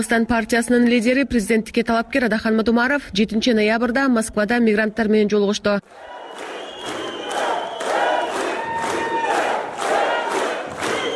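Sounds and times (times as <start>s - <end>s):
speech: 0.0s - 6.1s
supporters chanting and shouting in unison to greet presidential candidate Adakhan Madumarov: 5.9s - 11.1s.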